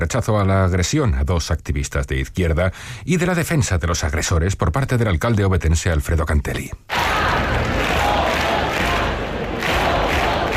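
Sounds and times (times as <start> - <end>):
speech: 0.0 - 7.4
protest crowd chanting in a square: 6.9 - 10.5.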